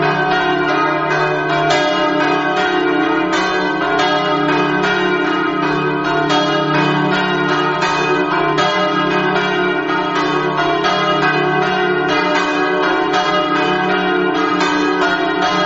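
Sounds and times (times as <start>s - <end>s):
bells ringing in Precenicco: 0.0s - 15.6s.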